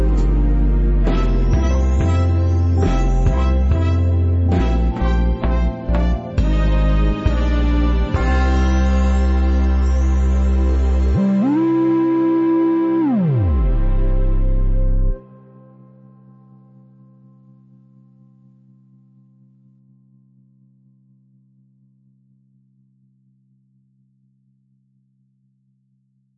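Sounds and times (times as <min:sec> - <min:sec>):
lofi blues Christmas tune: 0:00.0 - 0:16.7.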